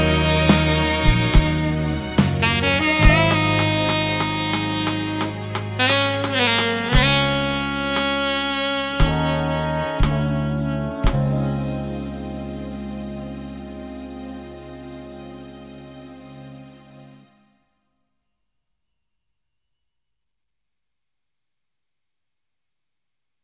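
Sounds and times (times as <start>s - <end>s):
concert backing track music: 0.0s - 17.4s.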